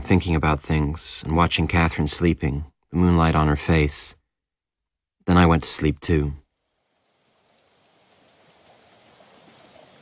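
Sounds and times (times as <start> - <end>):
speech: 0.1 - 4.2, 5.3 - 6.4
rain falling: 6.6 - 10.0.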